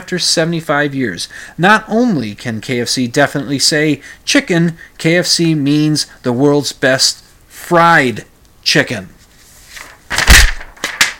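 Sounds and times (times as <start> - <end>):
speech: 0.1 - 9.2
paper thrown on the floor: 9.7 - 11.1.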